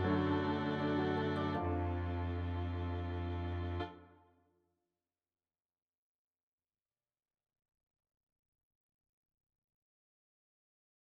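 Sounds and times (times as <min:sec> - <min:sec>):
low musical accompaniment: 0:00.0 - 0:04.2.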